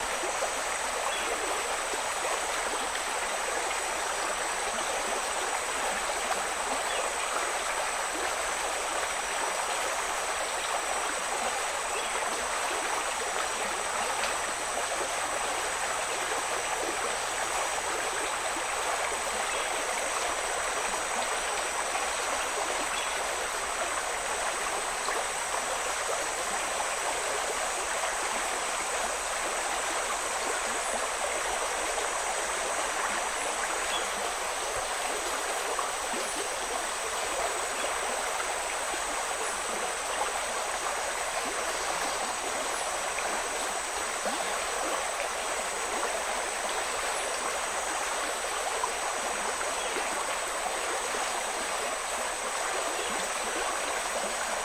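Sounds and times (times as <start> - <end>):
powerful stream flowing through a forest: 0.0 - 54.6.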